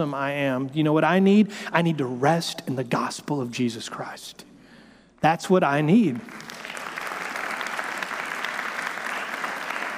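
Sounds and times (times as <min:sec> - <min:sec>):
speech: 0:00.0 - 0:04.5, 0:05.2 - 0:06.6
audience clapping: 0:06.1 - 0:09.9.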